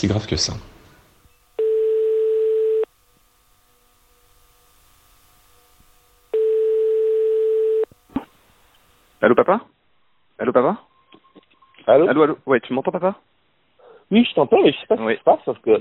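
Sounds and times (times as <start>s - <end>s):
speech: 0.0s - 0.7s, 9.2s - 9.7s, 10.4s - 10.9s, 11.9s - 13.3s, 14.1s - 15.8s
telephone ringing tone heard while calling: 1.6s - 2.9s, 6.3s - 7.9s.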